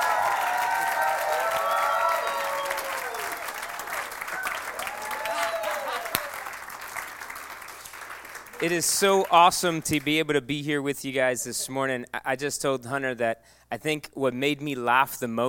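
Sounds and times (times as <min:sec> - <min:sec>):
people shouting: 0:00.0 - 0:03.4, 0:04.4 - 0:06.4
audience applause welcoming a pastor couple to the stage in Kennesaw, Georgia: 0:00.0 - 0:09.9
whistles: 0:01.5 - 0:03.2
speech: 0:08.6 - 0:15.4.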